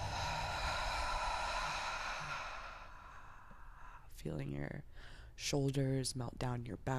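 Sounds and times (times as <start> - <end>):
slow breathing in through the nose and out through the mouth: 0.0 - 4.2, 4.9 - 5.4
speech: 4.2 - 6.9.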